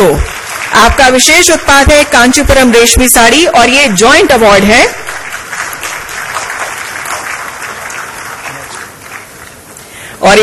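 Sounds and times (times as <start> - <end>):
sustained applause from a large audience: 0.0 - 1.5, 4.6 - 9.9
speech: 0.0 - 5.1, 10.3 - 10.4.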